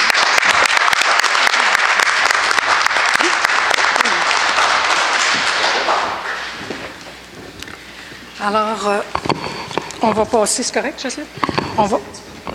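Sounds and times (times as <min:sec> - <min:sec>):
applause: 0:00.0 - 0:06.8
speech: 0:08.5 - 0:09.2, 0:10.0 - 0:12.2.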